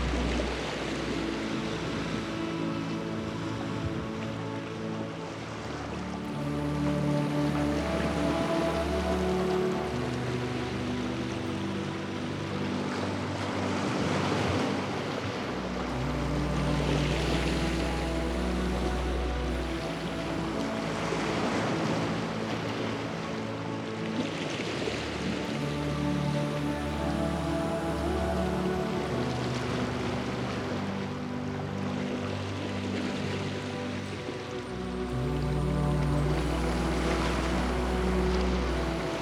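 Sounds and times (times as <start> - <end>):
waves: 0.0 - 39.1.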